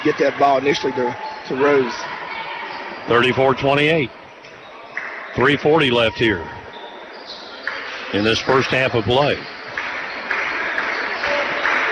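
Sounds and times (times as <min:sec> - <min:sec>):
speech: 0:00.0 - 0:02.2, 0:03.1 - 0:04.2, 0:05.4 - 0:06.6, 0:08.1 - 0:09.6
bench players clapping at a basketball game: 0:07.6 - 0:11.8.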